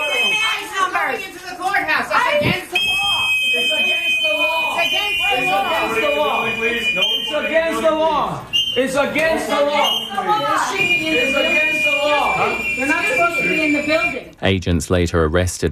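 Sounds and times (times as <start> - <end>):
protesters' shrill whistling: 0.0 - 0.9, 2.7 - 14.3
people shouting and talking: 0.0 - 1.2, 2.1 - 14.2
noisy crowd of voices: 0.0 - 14.4
speech: 14.0 - 15.7.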